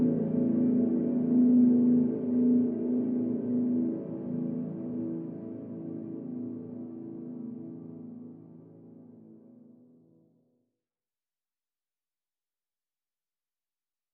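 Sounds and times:
synthesizer pad: 0.0 - 9.8.

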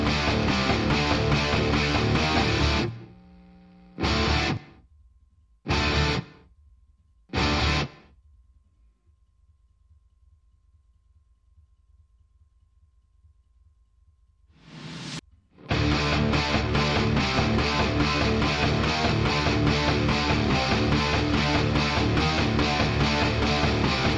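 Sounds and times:
guitars playing: 0.0 - 3.2, 4.0 - 4.8, 5.7 - 6.4, 7.4 - 8.0, 15.6 - 24.1.

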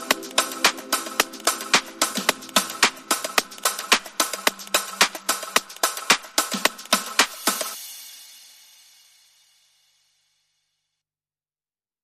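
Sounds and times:
alpine ambience rhythm: 0.0 - 8.3.

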